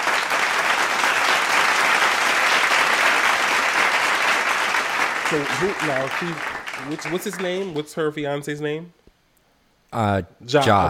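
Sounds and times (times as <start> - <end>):
applause: 0.0 - 7.9
speech: 5.3 - 9.0, 9.9 - 10.8.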